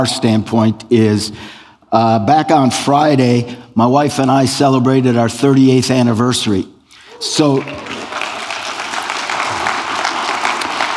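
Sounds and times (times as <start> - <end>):
speech: 0.0 - 7.9
audience clapping: 7.2 - 10.9.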